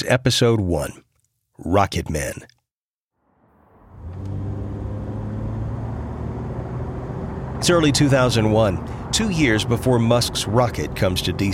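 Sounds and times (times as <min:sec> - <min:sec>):
speech: 0:00.0 - 0:02.6, 0:07.6 - 0:11.5
car driving down the Long Island Expressway in Queens New York at night: 0:03.4 - 0:11.5.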